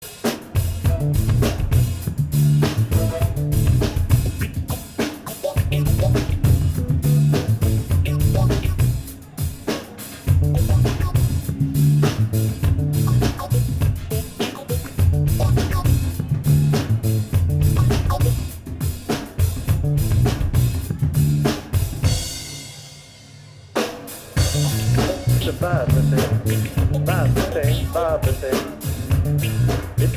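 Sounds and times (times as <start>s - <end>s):
improvised music jam: 0.0s - 30.1s.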